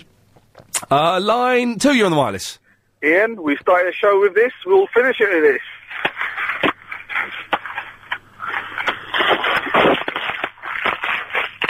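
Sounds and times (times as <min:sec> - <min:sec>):
speech: 0:00.9 - 0:05.7
bubble wrap being crushed and popped: 0:05.8 - 0:11.6.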